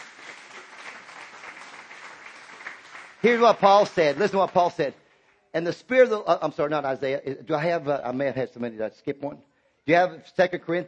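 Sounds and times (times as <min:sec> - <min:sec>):
audience clapping: 0:00.0 - 0:05.4
speech: 0:03.2 - 0:10.8.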